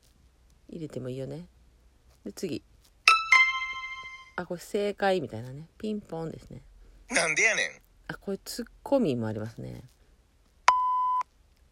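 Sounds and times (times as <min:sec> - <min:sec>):
speech: 0:00.7 - 0:01.6, 0:02.2 - 0:02.7, 0:04.4 - 0:10.0
electronic censor bleep: 0:10.7 - 0:11.2.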